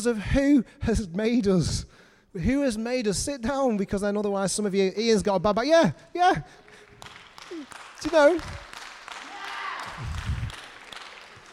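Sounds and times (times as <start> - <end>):
speech: 0.0 - 6.7, 7.5 - 8.6
scattered handclaps from an audience: 6.6 - 11.5.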